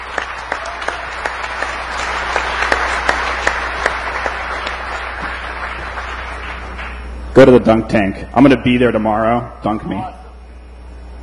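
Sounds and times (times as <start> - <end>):
audience round of applause: 0.0 - 7.1
speech: 7.4 - 10.2.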